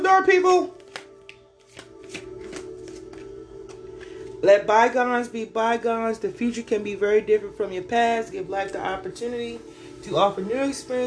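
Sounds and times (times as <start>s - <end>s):
speech: 0.1s - 0.8s, 4.4s - 11.0s
deck of cards being shuffled: 0.7s - 3.8s.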